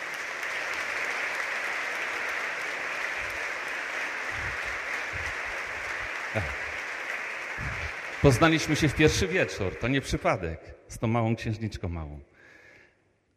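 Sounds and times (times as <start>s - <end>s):
audience applause: 0.0s - 10.5s
speech: 6.4s - 6.6s, 7.6s - 12.3s.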